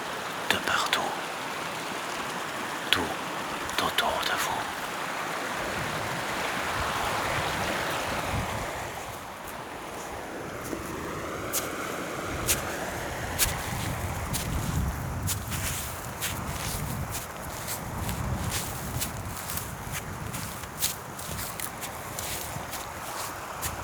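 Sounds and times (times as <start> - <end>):
springs and small mountain streams flowing: 0.0 - 23.8
footsteps walking on alpine grassland: 9.1 - 23.8.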